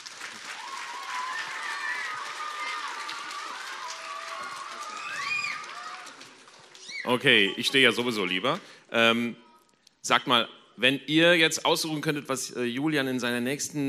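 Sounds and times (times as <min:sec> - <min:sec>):
children applauding: 0:00.0 - 0:08.0
speech: 0:07.0 - 0:09.4, 0:10.0 - 0:13.8.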